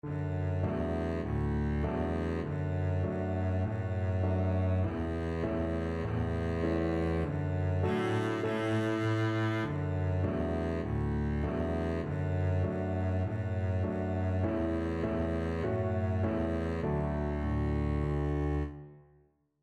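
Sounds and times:
double bass nursery rhyme melody: 0:00.0 - 0:18.8.

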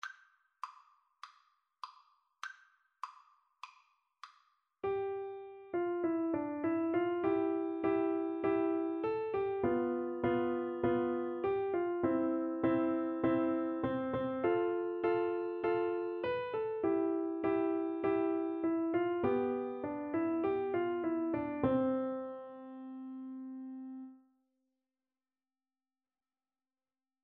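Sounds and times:
piano duet: 0:04.8 - 0:24.2.

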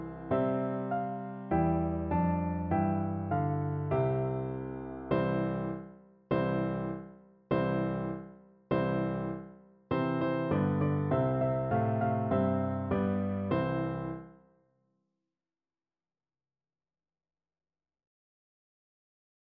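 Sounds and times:
piano duet: 0:00.0 - 0:14.4.

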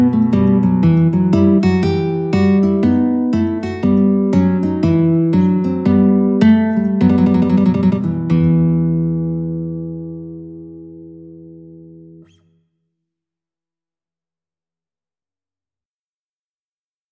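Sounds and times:
alto guitar duet playing a bourree: 0:00.0 - 0:12.6.

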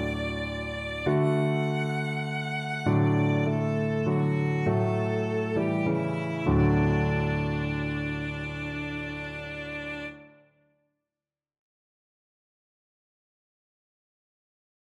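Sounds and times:
violin playing a Christmas carol: 0:00.0 - 0:10.4.

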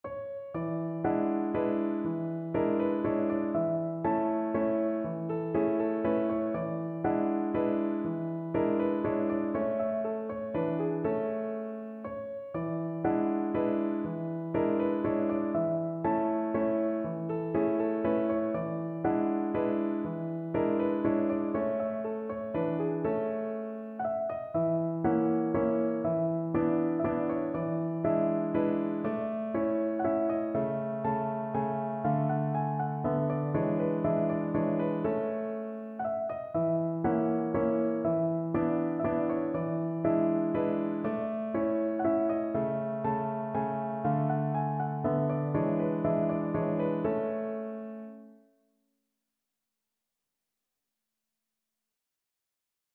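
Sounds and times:
German dance piano piece: 0:00.0 - 0:48.3.

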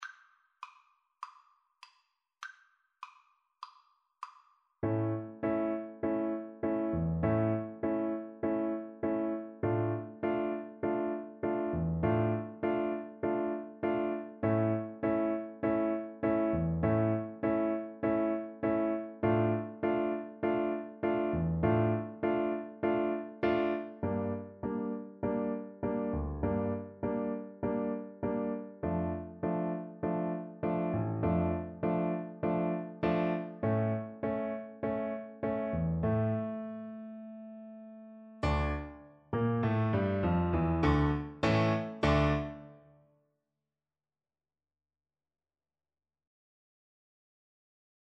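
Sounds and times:
piano duet: 0:04.8 - 0:42.9.

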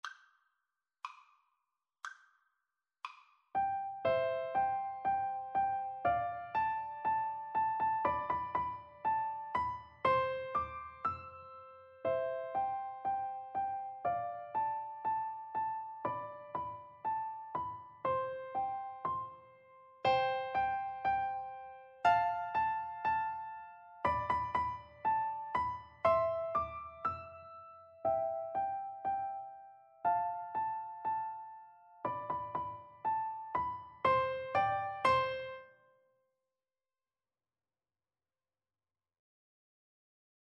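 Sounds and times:
piano duet: 0:03.6 - 0:35.8.

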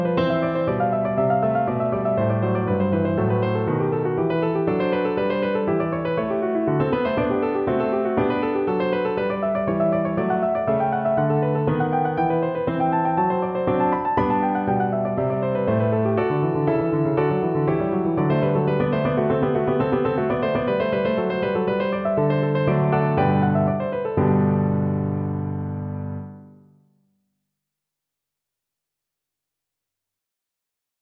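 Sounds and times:
piano prelude in G: 0:00.0 - 0:26.8.

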